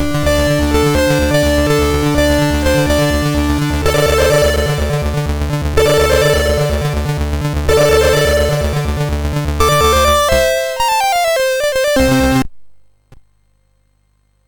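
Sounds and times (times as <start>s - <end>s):
MOS6581R3 SID chip game music: 0.0s - 12.5s.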